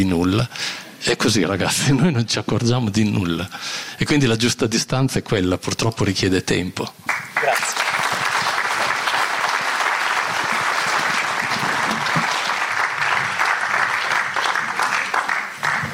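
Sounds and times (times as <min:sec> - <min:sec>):
speech: 0:00.0 - 0:07.8
audience applause: 0:07.1 - 0:15.9.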